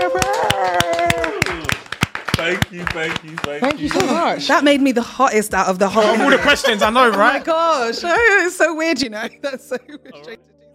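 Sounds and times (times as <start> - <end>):
audience applause: 0.0 - 4.4
laughter: 2.4 - 4.4, 5.8 - 10.4
speech: 2.5 - 10.5.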